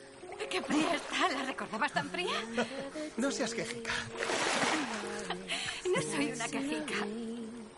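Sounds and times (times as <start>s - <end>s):
speech: 0.5s - 5.1s, 6.0s - 7.4s
two people jumping into a river: 4.1s - 5.8s.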